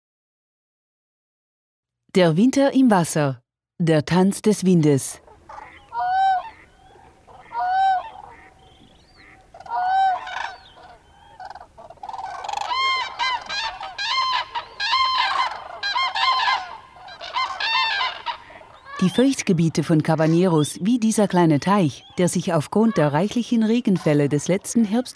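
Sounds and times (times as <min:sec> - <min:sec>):
speech: 0:02.1 - 0:05.2, 0:19.2 - 0:25.1
overwintering geese honking at a pond: 0:05.2 - 0:25.1.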